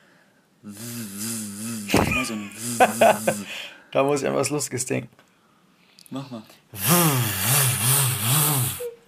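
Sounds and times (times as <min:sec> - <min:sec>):
speech: 0:00.6 - 0:01.3, 0:01.9 - 0:05.2, 0:06.1 - 0:07.5
voice imitating a motorcycle engine as a vocal training exercise: 0:00.7 - 0:03.5, 0:06.8 - 0:08.9.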